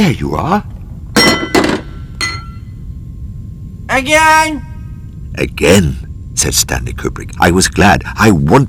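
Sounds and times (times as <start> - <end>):
speech: 0.0 - 0.7, 3.9 - 4.7, 5.4 - 8.6
tray slammed down: 1.2 - 2.0.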